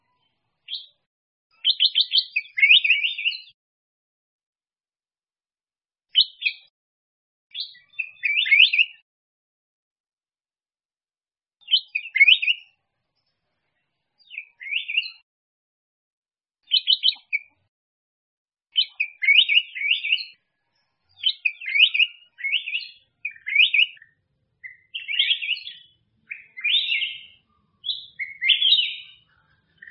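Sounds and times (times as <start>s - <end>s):
black-crested bulbul singing: 0.7s - 3.6s, 7.5s - 9.0s, 11.6s - 12.8s, 14.3s - 15.2s, 16.6s - 17.6s, 18.7s - 20.4s, 21.1s - 29.8s.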